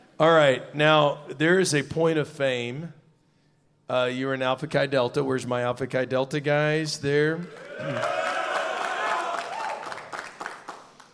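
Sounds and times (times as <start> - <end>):
speech: 0.2 - 3.0, 3.9 - 8.2
applause: 7.4 - 11.1
group cheering and whooping: 7.5 - 10.2.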